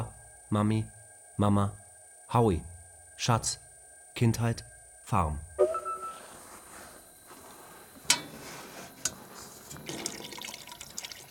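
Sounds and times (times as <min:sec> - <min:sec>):
speech: 0:00.5 - 0:03.6, 0:04.2 - 0:05.5
sharp drips and clinks: 0:09.0 - 0:11.2
water pouring and trickling into a tank: 0:09.6 - 0:11.2.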